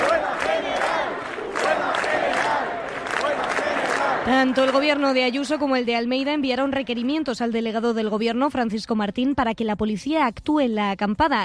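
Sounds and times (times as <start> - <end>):
crowd of protesters shouting and chanting: 0.0 - 5.6
speech: 4.2 - 11.4.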